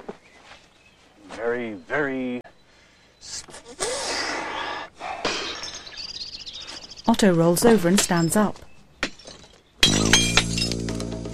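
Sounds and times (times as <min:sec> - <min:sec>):
speech: 0:01.4 - 0:02.5, 0:07.2 - 0:08.7
glass panel in a back door being smashed: 0:09.0 - 0:11.2.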